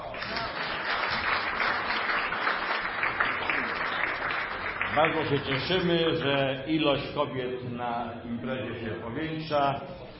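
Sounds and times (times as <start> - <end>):
audience applause: 0.0 - 6.0
speech: 5.0 - 10.0.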